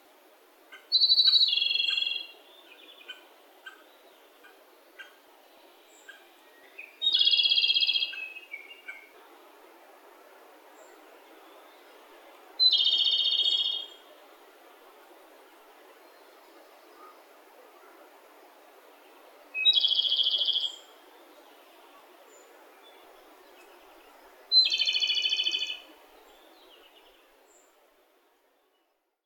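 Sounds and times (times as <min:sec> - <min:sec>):
Japanese robin: 0:00.7 - 0:09.1, 0:12.6 - 0:14.0, 0:19.6 - 0:27.2.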